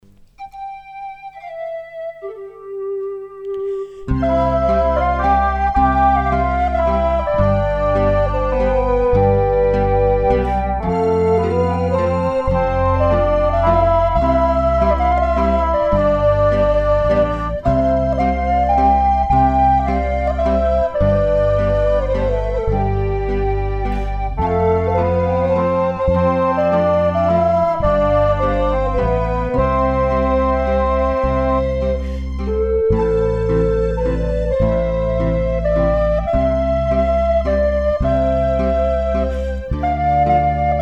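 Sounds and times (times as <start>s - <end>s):
instrumental music: 0.0s - 40.8s.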